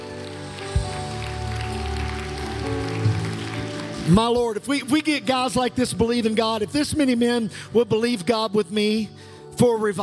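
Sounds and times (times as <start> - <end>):
audience clapping hands: 0.0 - 5.6
speech: 4.1 - 10.0.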